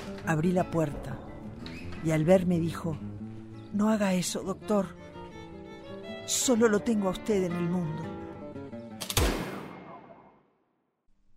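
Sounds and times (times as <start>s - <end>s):
speech: 0.3s - 1.2s, 2.0s - 3.1s, 3.7s - 5.0s, 6.3s - 8.2s
gunshot: 9.0s - 10.4s.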